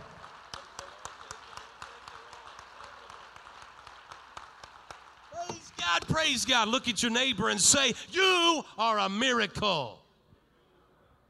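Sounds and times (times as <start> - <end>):
audience clapping hands: 0.0 - 8.5
speech: 6.0 - 10.0.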